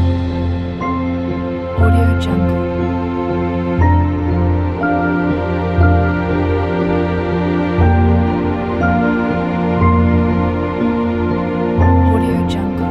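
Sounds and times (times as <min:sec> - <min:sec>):
piano: 0:00.0 - 0:12.9.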